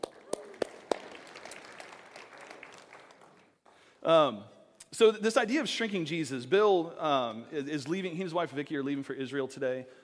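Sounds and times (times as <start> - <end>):
scattered applause from a crowd: 0.0 - 3.8
sharp evenly spaced claps: 0.0 - 3.8
speech: 4.0 - 10.0.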